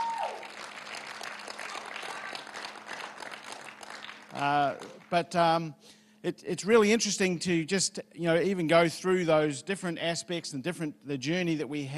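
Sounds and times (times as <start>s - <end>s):
audience applause: 0.0s - 5.2s
speech: 4.4s - 11.9s.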